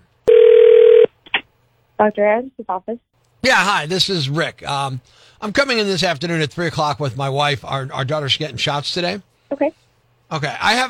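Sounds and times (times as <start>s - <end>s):
telephone ringing on outgoing call: 0.3s - 1.1s
speech: 2.0s - 10.8s.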